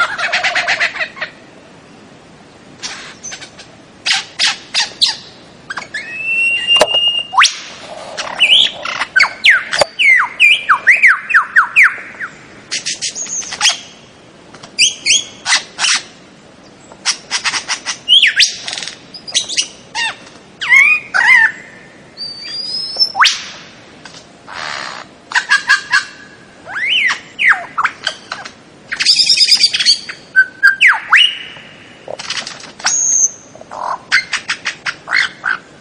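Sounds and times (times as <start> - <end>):
bird song: 2.8 - 14.1, 14.8 - 23.6, 24.5 - 35.7.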